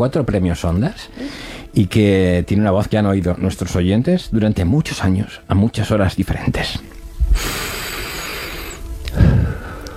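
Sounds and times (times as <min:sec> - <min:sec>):
speech: 0:00.0 - 0:07.8
deliberate audible breathing into microphone: 0:01.1 - 0:01.7, 0:07.2 - 0:09.9.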